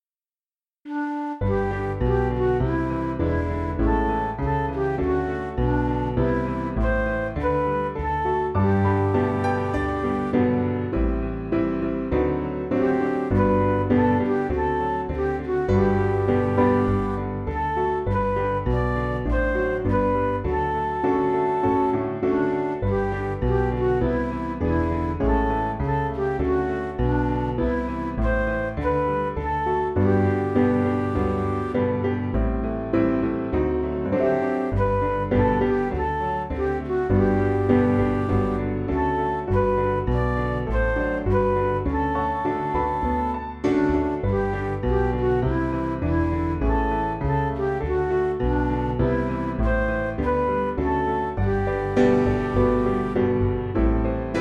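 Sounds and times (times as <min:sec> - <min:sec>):
MIDI music: 0:00.9 - 0:54.3.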